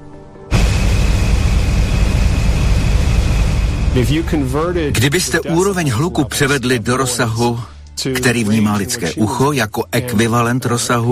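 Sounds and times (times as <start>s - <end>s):
ship engine bolted to a steel hull: 0.5s - 6.5s
speech: 3.9s - 11.0s.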